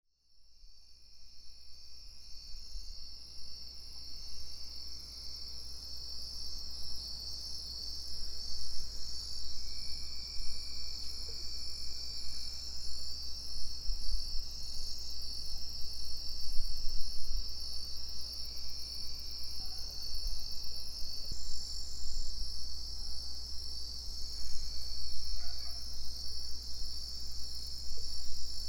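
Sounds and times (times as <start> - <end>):
crickets trilling: 0.5 - 28.6.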